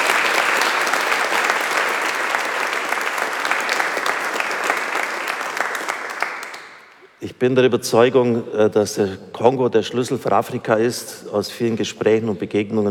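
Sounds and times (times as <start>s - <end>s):
large audience applause: 0.0s - 7.0s
speech: 7.4s - 12.9s.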